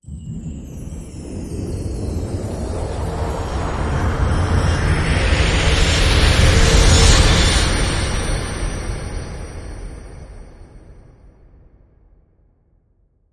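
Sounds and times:
genie sparkle rising effect: 0:00.0 - 0:10.9.

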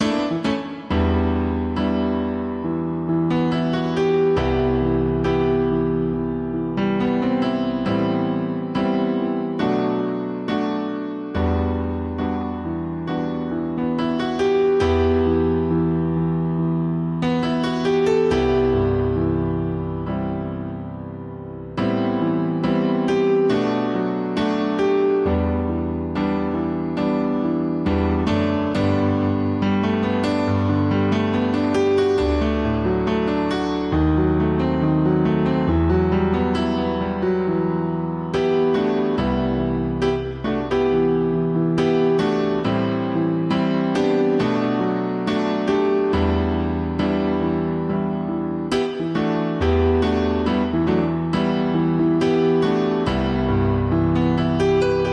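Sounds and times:
piano: 0:00.0 - 0:55.1.

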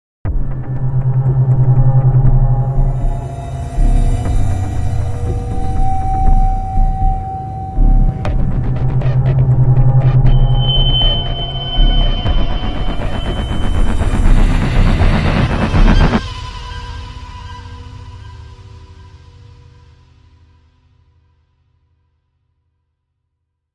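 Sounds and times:
crime music sting: 0:01.0 - 0:16.2.

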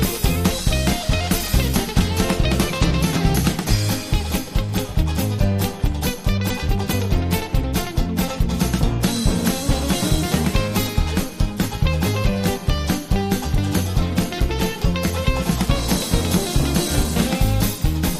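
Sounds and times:
lead guitar: 0:00.0 - 0:18.1.

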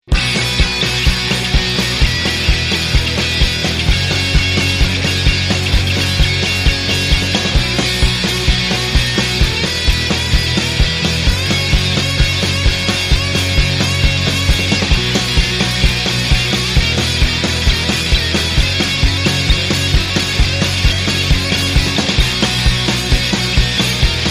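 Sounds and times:
lead guitar: 0:00.0 - 0:24.3.

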